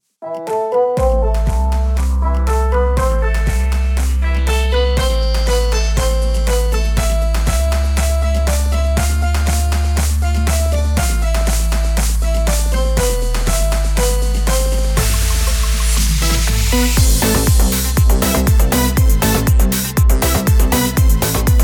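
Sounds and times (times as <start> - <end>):
house dance version background vlog music: 0.3 - 21.6.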